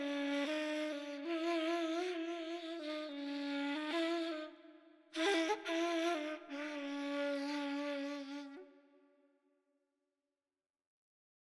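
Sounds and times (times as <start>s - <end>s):
ney flute playing: 0.0s - 4.6s, 5.2s - 8.7s.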